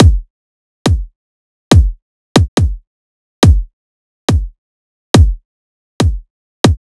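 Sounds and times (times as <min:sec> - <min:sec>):
riddim kick drum loop: 0:00.0 - 0:00.3, 0:00.9 - 0:01.1, 0:01.7 - 0:02.8, 0:03.4 - 0:03.7, 0:04.3 - 0:04.6, 0:05.2 - 0:05.4, 0:06.0 - 0:06.8.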